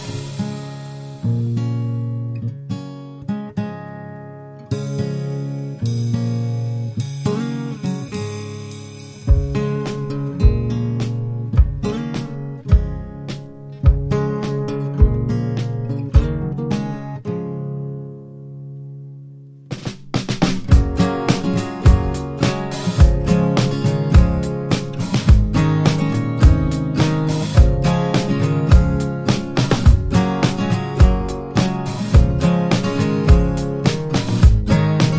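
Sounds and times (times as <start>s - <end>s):
drums: 0.0s - 1.3s, 5.8s - 17.1s, 19.7s - 35.1s
strummed guitars: 0.0s - 35.1s.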